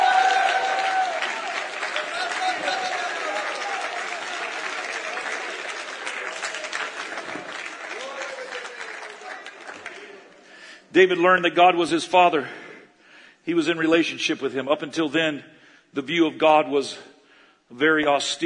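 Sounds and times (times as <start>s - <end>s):
audience shouting: 0.0s - 5.1s
audience clapping: 0.0s - 10.7s
speech: 11.0s - 12.6s, 13.5s - 17.1s, 17.7s - 18.4s.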